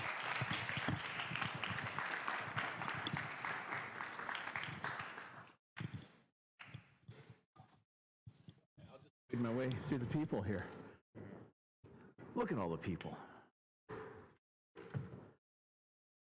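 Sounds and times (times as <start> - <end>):
round of applause: 0.0 - 5.6
speech: 9.4 - 10.8, 12.4 - 13.3.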